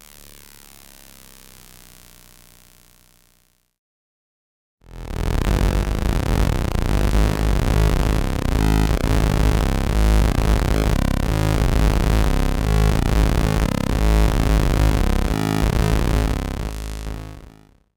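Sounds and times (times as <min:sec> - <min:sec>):
electronic music: 0:05.3 - 0:17.5.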